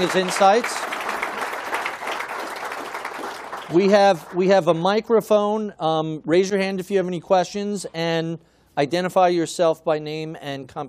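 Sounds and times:
speech: 0.0 - 0.9, 3.7 - 10.8
live audience applause for a speaker after a financial talk: 0.0 - 4.4.

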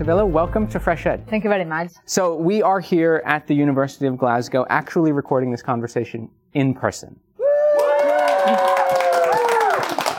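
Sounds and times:
speech: 0.0 - 7.2
excited crowd cheering and clapping: 7.4 - 10.1
rising whoops: 7.4 - 10.1.

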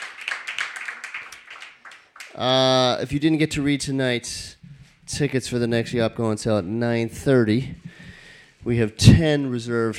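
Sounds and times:
crowd applause: 0.0 - 2.6
speech: 2.4 - 7.9, 8.6 - 9.9.

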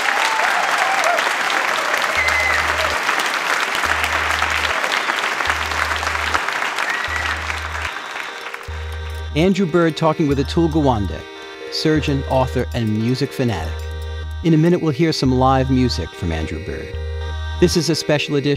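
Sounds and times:
audience applause: 0.0 - 9.2
speech: 9.4 - 13.8, 14.4 - 18.5.

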